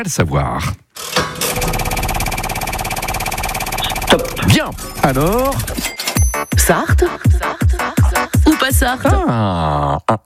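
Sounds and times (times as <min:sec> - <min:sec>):
speech: 0:00.0 - 0:01.3, 0:04.1 - 0:08.0, 0:08.6 - 0:10.2
game show wheel spinning on a French quiz program: 0:01.0 - 0:06.3.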